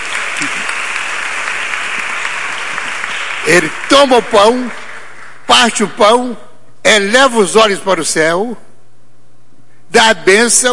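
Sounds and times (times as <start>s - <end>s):
audience applause: 0.0s - 5.4s
speech: 3.4s - 4.8s, 5.5s - 8.7s, 9.9s - 10.7s.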